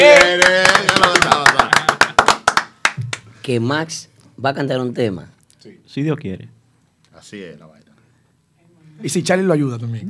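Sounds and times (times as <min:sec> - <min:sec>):
applause: 0:00.0 - 0:03.3
speech: 0:03.5 - 0:06.6, 0:07.2 - 0:07.8, 0:09.0 - 0:10.0.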